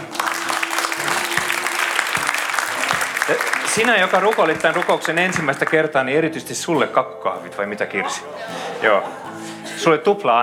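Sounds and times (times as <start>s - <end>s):
laughter: 0.0s - 5.8s, 8.0s - 10.0s
audience applause: 0.0s - 6.0s
speech: 3.3s - 10.4s.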